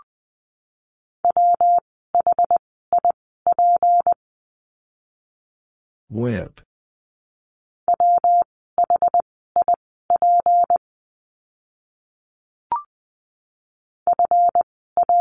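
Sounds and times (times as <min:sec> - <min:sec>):
morse code beeps: 0:01.3 - 0:04.2, 0:07.9 - 0:10.8, 0:14.1 - 0:15.1
speech: 0:06.1 - 0:06.7.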